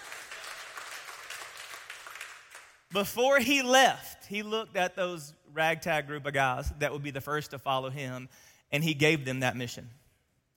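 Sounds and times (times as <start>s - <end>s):
audience applauding: 0.0s - 2.9s
speech: 2.9s - 10.0s.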